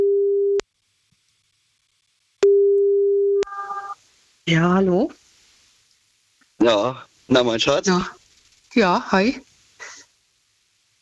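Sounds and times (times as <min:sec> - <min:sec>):
telephone line tone while a call is being placed: 0:00.0 - 0:00.6, 0:02.4 - 0:04.0
speech: 0:04.5 - 0:05.2, 0:06.6 - 0:09.5.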